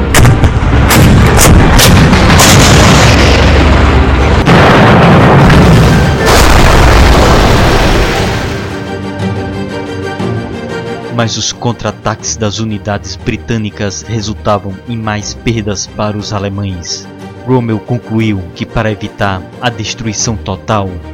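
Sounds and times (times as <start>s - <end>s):
anti-tank guns firing: 0.2s - 7.9s
speech: 11.2s - 21.1s.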